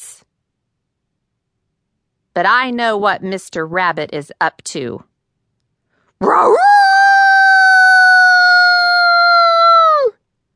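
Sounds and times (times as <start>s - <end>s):
speech: 2.4s - 5.1s, 6.2s - 7.0s
dog howling: 6.2s - 10.1s.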